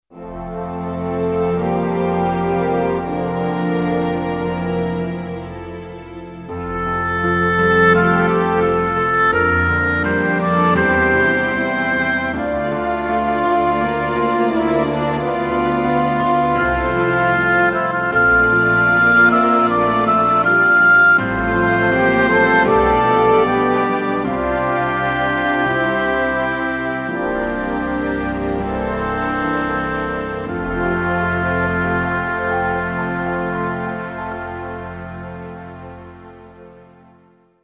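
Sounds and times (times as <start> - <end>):
flute: 0.1 - 37.6.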